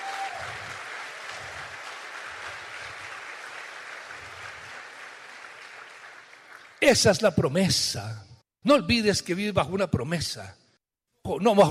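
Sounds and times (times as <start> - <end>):
audience applause: 0.0 - 6.8
speech: 6.8 - 10.6, 11.2 - 11.6.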